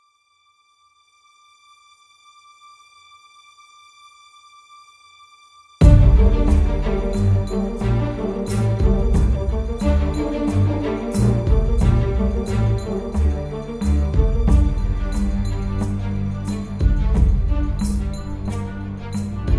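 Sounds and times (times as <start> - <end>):
orchestral music: 5.8 - 19.5.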